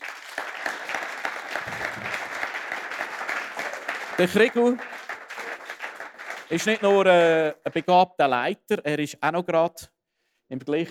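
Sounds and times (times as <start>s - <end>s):
audience applause: 0.0s - 8.0s
speech: 4.2s - 5.0s, 6.5s - 9.9s, 10.5s - 10.8s.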